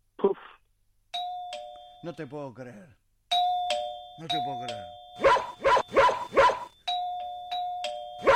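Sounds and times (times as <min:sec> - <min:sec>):
electronic doorbell chiming: 0:01.2 - 0:02.3, 0:03.3 - 0:08.3
speech: 0:02.0 - 0:03.0, 0:04.2 - 0:06.1
dog barking: 0:05.2 - 0:06.7.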